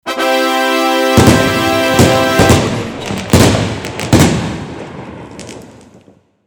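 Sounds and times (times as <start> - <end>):
jubilant fanfare: 0.0 - 3.9
fireworks: 1.2 - 6.4.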